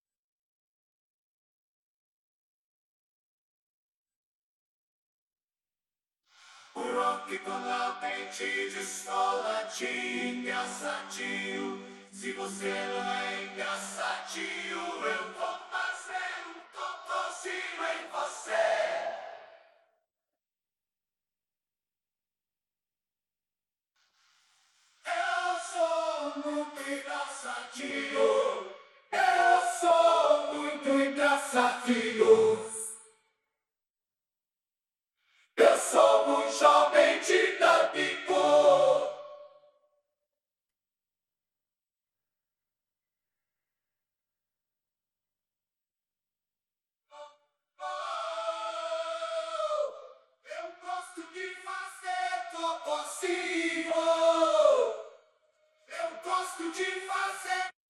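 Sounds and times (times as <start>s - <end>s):
backing vocals: 6.8s - 19.5s, 25.1s - 33.0s, 35.6s - 39.3s, 47.8s - 55.0s, 55.9s - 57.7s.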